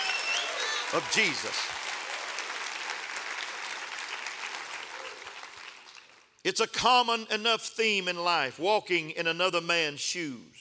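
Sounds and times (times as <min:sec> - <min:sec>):
audience clapping: 0:00.0 - 0:06.4
speech: 0:00.9 - 0:01.8, 0:06.4 - 0:10.6.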